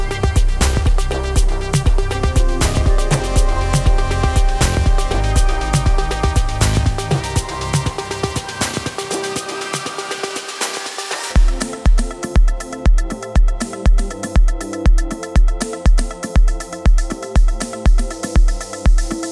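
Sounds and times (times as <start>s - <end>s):
Afro house DJ mix: 0.0s - 19.3s.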